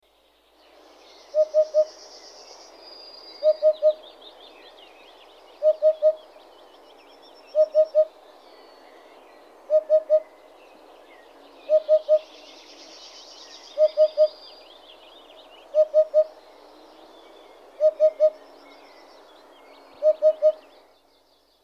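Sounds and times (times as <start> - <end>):
hoopoe calling: 1.3 - 2.0, 3.4 - 4.1, 5.6 - 6.3, 7.5 - 8.2, 9.7 - 10.4, 11.6 - 12.5, 13.7 - 14.4, 15.6 - 16.5, 17.3 - 18.8, 19.9 - 20.7.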